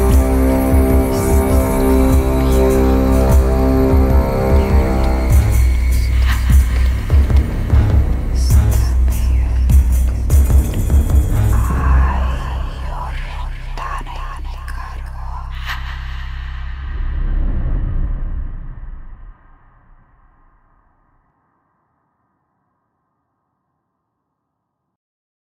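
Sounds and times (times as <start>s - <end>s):
dark magic background music: 0.0s - 18.5s.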